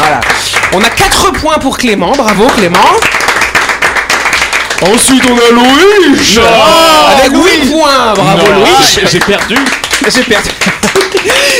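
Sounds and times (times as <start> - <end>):
studio applause: 0.0 - 11.5
speech: 0.7 - 3.2, 4.8 - 11.5
laughter: 7.4 - 11.5.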